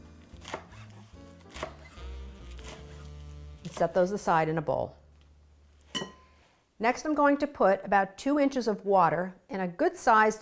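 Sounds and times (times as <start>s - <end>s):
steady low musical hum: 0.0s - 6.4s
knife chopping chard leaves on a board: 0.2s - 4.0s
speech: 3.7s - 5.0s, 6.8s - 10.4s.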